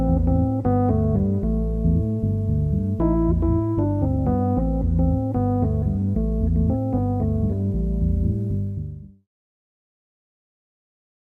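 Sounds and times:
Rhodes electric piano: 0:00.0 - 0:09.0.

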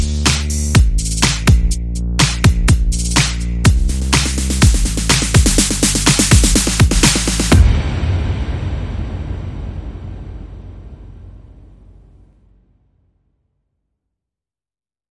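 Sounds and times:
rhythm: 0:00.0 - 0:08.0.

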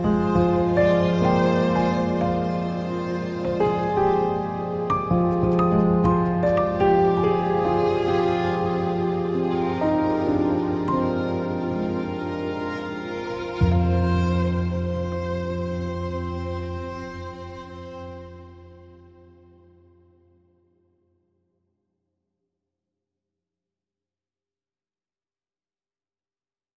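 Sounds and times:
strings: 0:00.0 - 0:20.0
piano: 0:00.0 - 0:20.9.

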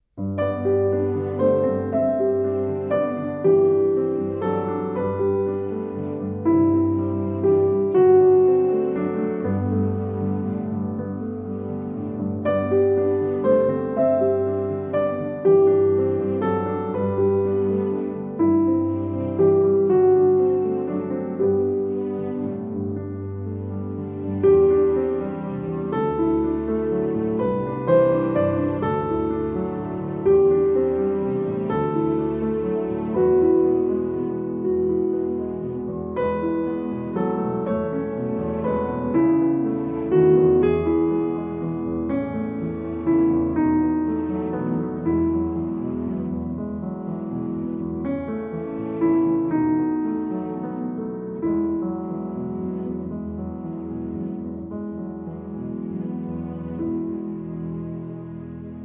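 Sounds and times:
strings: 0:00.0 - 0:58.8.

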